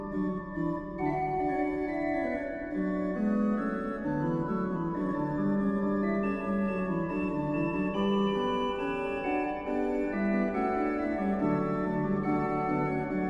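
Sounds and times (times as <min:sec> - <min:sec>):
organ hymn: 0:00.2 - 0:13.2.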